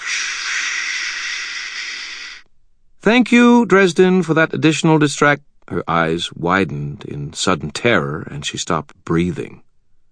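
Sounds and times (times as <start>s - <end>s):
voice imitating white noise with a hissing shush: 0.0s - 2.4s
speech: 3.1s - 9.7s.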